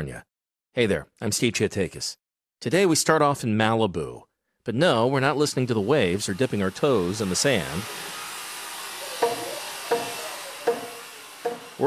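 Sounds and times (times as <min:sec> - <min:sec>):
speech: 0:00.0 - 0:08.2
construction site power tool: 0:05.4 - 0:11.8.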